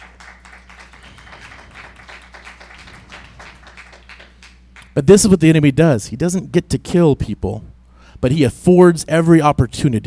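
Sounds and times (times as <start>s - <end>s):
crowd clapping: 0.0s - 5.0s
speech: 5.0s - 10.0s.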